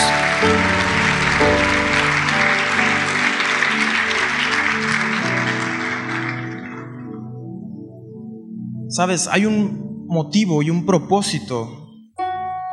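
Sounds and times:
audience applauding: 0:00.0 - 0:07.4
speech: 0:09.0 - 0:11.8.

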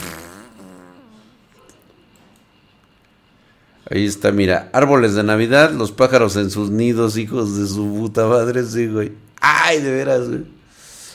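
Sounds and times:
fart: 0:00.0 - 0:01.4
speech: 0:03.8 - 0:10.6.

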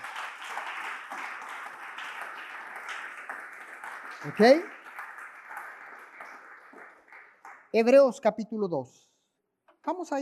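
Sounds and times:
audience applauding: 0:00.0 - 0:08.1
speech: 0:04.2 - 0:04.8, 0:07.7 - 0:09.0, 0:09.8 - 0:10.2.

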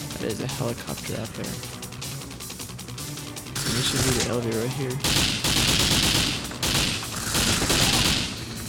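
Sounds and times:
speech: 0:00.2 - 0:01.8, 0:03.7 - 0:05.7
video game sentry gun firing: 0:05.0 - 0:08.5.

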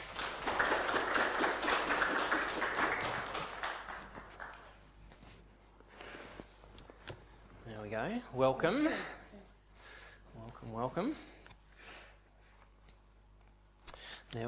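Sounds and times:
audience clapping as two people come forward: 0:00.0 - 0:04.9
speech: 0:08.0 - 0:09.2, 0:10.7 - 0:11.3.

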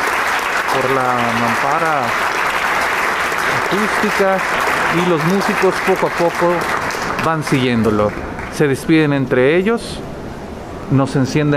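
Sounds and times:
audience applause after orchestra performance: 0:00.0 - 0:09.1
speech: 0:00.8 - 0:02.2, 0:03.5 - 0:10.1, 0:10.9 - 0:11.5.

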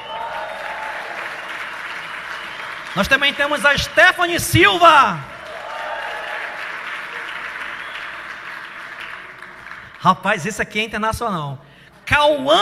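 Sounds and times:
audience applause: 0:00.0 - 0:10.0
speech: 0:02.9 - 0:05.3, 0:10.0 - 0:12.6.

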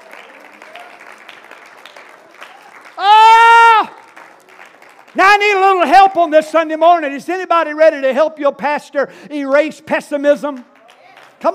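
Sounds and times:
audience clapping hands: 0:00.0 - 0:06.4, 0:10.4 - 0:11.5
speech: 0:05.2 - 0:10.7.

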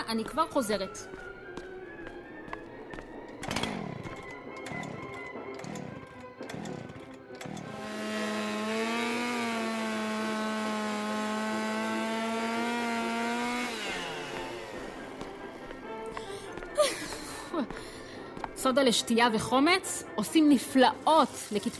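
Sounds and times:
speech: 0:00.1 - 0:01.3, 0:18.7 - 0:21.7
clunks: 0:03.4 - 0:08.3
power saw sawing in a bathtub: 0:03.4 - 0:15.8, 0:20.9 - 0:21.7.

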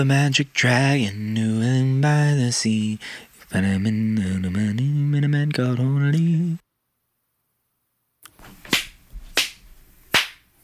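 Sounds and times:
speech: 0:00.0 - 0:06.6
hand claps: 0:08.3 - 0:10.6.

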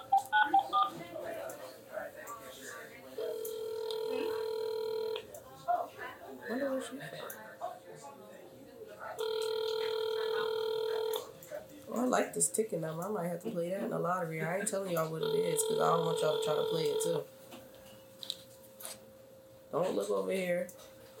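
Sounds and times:
indistinct talking: 0:00.0 - 0:17.3
telephone keypad tones: 0:03.2 - 0:05.2, 0:09.2 - 0:11.3, 0:15.2 - 0:17.2
speech: 0:06.8 - 0:07.4, 0:12.1 - 0:17.4, 0:19.8 - 0:20.8.

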